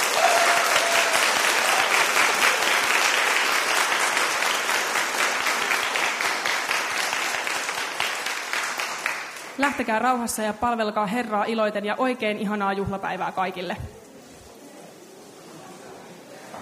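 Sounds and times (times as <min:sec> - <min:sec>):
audience applause: 0:00.0 - 0:09.6
speech: 0:09.6 - 0:14.0.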